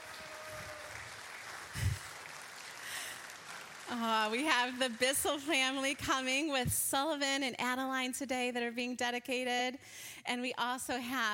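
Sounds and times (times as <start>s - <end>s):
audience applause: 0.0s - 6.0s
speech: 3.9s - 11.3s.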